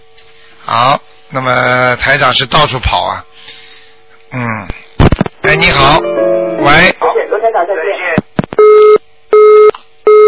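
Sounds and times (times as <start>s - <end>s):
speech: 0.7s - 3.6s, 4.3s - 4.8s, 5.5s - 9.0s
telephone busy tone after dropped call: 8.6s - 10.2s.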